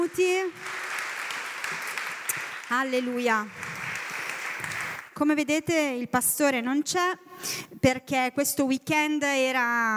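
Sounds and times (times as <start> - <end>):
applause: 0.0 - 5.2
speech: 0.1 - 0.8, 2.7 - 3.6, 5.2 - 9.9.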